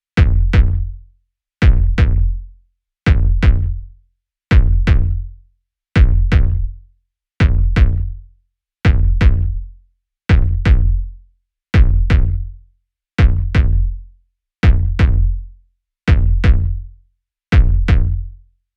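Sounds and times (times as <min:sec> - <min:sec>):
kick drum loop: 0:00.2 - 0:01.0, 0:01.6 - 0:02.4, 0:03.1 - 0:03.8, 0:04.5 - 0:05.3, 0:06.0 - 0:06.8, 0:07.4 - 0:08.2, 0:08.9 - 0:09.7, 0:10.3 - 0:11.1, 0:11.8 - 0:12.5, 0:13.2 - 0:14.0, 0:14.6 - 0:15.4, 0:16.1 - 0:16.8, 0:17.5 - 0:18.3.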